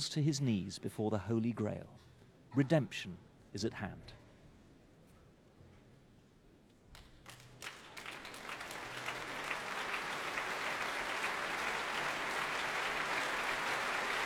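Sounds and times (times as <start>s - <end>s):
speech: 0.0s - 4.2s
audience applause after opera: 7.3s - 14.2s.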